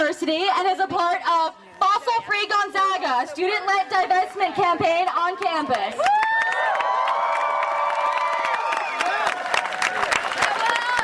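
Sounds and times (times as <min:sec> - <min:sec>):
speech: 0:00.2 - 0:07.0
crowd applauding and cheering: 0:05.6 - 0:11.0.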